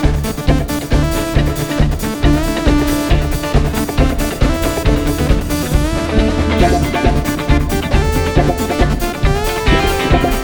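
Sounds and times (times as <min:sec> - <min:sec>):
drum and bass music: 0:00.0 - 0:10.4.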